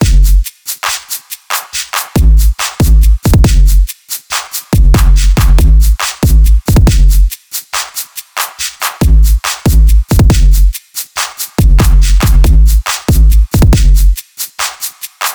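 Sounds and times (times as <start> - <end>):
hip hop music: 2.1 - 3.9, 4.8 - 7.3, 9.0 - 10.7, 11.6 - 14.2.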